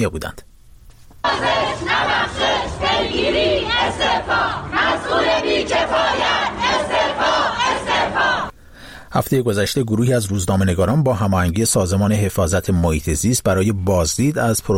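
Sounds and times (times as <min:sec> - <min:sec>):
speech: 0:00.0 - 0:00.5, 0:01.2 - 0:07.6, 0:09.1 - 0:14.7
protesting crowd chanting: 0:01.2 - 0:08.5.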